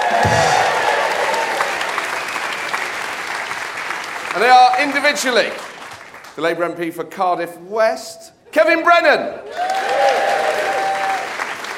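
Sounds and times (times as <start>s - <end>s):
live Christmas special show audience clapping for guest MPs: 0.0s - 6.6s, 9.5s - 11.7s
speech: 4.4s - 5.7s, 6.4s - 10.3s.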